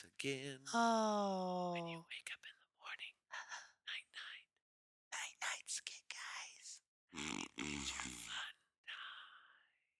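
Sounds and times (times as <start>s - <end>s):
speech: 0.0s - 4.4s
voice imitating snoring: 7.2s - 8.3s.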